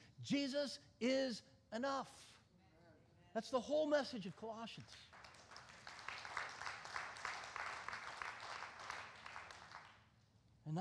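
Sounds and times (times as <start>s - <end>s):
speech: 0.2s - 2.3s, 3.4s - 5.1s, 10.6s - 10.8s
crowd clapping: 4.8s - 10.1s.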